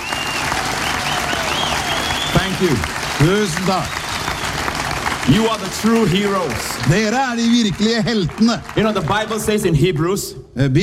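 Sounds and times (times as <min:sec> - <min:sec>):
faint whistling: 0:00.0 - 0:02.6
crowd applauding: 0:00.0 - 0:10.1
speech: 0:02.3 - 0:04.2, 0:05.3 - 0:10.8.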